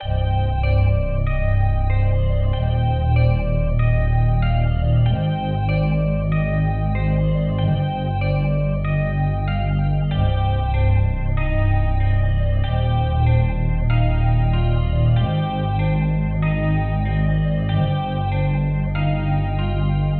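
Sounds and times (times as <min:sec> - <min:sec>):
music loop: 0:00.0 - 0:20.1.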